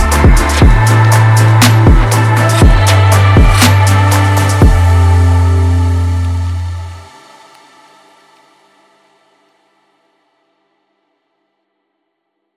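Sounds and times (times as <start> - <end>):
chill trap music: 0.0 - 7.9.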